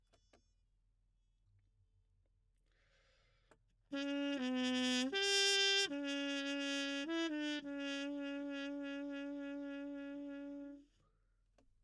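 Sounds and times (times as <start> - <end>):
trumpet: 3.9 - 11.0.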